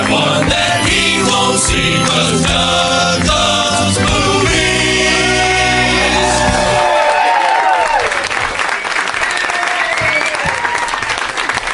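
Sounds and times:
audience applause from a packed house at the UCB Theater: 0.0s - 4.8s, 5.6s - 11.7s
speech: 1.7s - 2.8s
scattered cheering voices at the UCB Theater: 5.0s - 11.7s.

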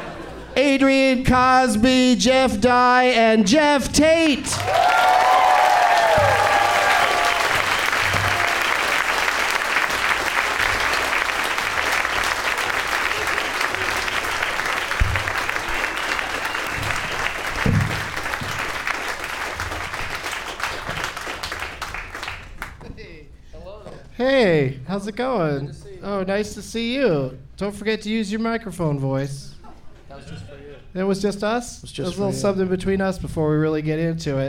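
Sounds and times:
speech: 0.6s - 5.5s, 24.3s - 29.5s, 30.9s - 34.4s
audience applauding as three guests come on stage: 4.1s - 22.9s.

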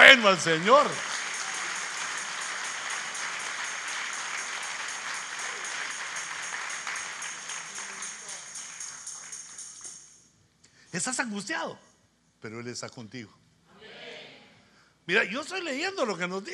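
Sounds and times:
audience applause: 0.0s - 9.0s
speech: 0.1s - 1.1s, 10.9s - 13.4s, 15.1s - 16.5s.

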